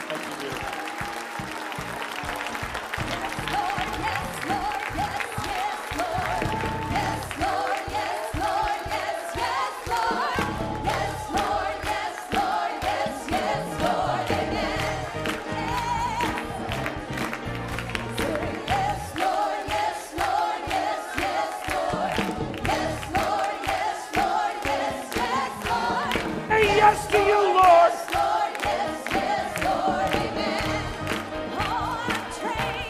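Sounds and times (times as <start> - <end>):
audience clapping hands: 0.0 - 32.8
scattered cheers and whoops: 0.5 - 2.4.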